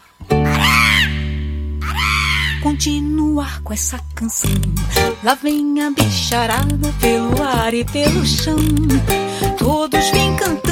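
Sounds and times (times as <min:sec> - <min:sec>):
macaw screeching: 0:00.4 - 0:03.0
humming musical tone: 0:00.4 - 0:09.3
speech: 0:02.6 - 0:10.7.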